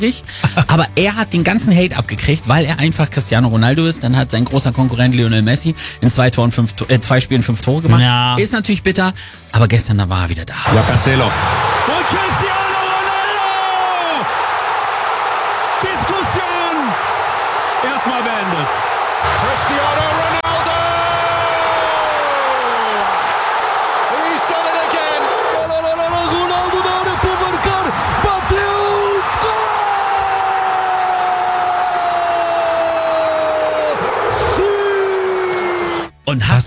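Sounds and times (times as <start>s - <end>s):
speech: 0.0s - 12.6s
packed stadium crowd roaring a chant: 10.7s - 36.1s
whoops and cheers: 11.4s - 36.1s.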